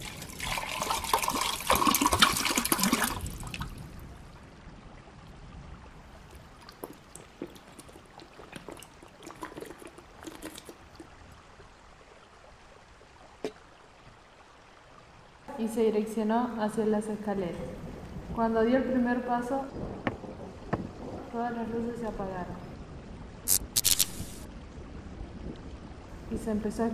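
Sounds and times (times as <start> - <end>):
water pouring from a jug into a glass: 0.0 - 3.6, 6.8 - 11.1
speech: 15.6 - 17.8, 18.4 - 20.0, 21.4 - 22.6, 26.4 - 26.9.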